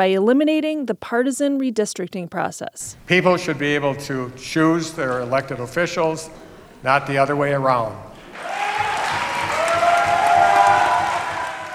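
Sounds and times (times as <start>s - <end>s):
speech: 0.0s - 8.5s
large crowd applause: 8.2s - 11.7s.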